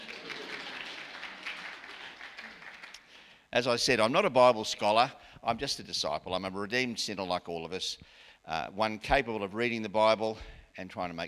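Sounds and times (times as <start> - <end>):
audience applause: 0.0 - 3.1
speech: 3.6 - 11.2.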